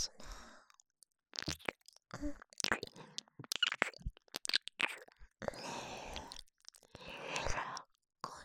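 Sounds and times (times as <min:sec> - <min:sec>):
ear licking: 0:01.3 - 0:07.9.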